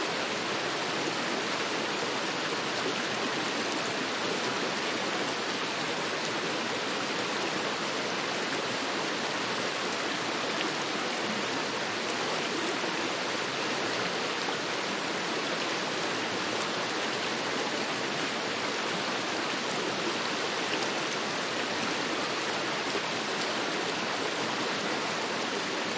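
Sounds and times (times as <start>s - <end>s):
evenly flowing medium intensity river or stream: 0.0s - 25.9s.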